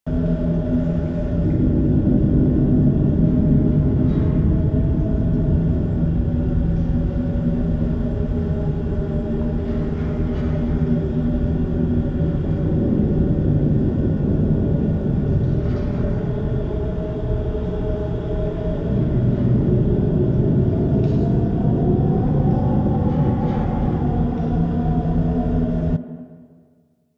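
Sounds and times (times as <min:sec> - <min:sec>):
tunnel ambience: 0:00.1 - 0:26.6.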